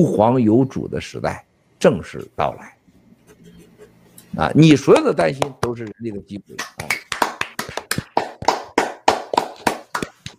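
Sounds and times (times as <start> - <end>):
speech: 0.0 - 2.8, 4.3 - 7.1
audience clapping in a steady rhythmic beat: 4.9 - 10.3.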